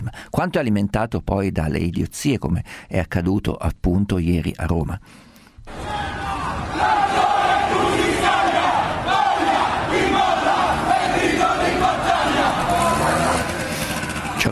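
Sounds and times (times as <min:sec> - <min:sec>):
speech: 0:00.1 - 0:05.9
crowd chanting a battle cry: 0:05.7 - 0:14.4.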